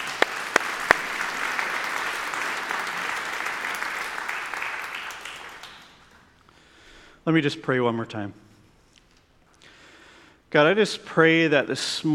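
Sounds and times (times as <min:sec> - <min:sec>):
audience applause: 0:00.0 - 0:06.3
speech: 0:07.3 - 0:08.5, 0:10.5 - 0:12.1.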